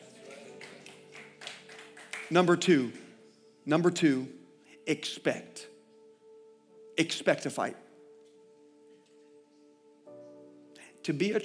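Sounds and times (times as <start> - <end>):
audience hand clapping: 0.0 - 3.2
speech: 2.3 - 3.0, 3.7 - 5.7, 7.0 - 7.8, 11.1 - 11.4.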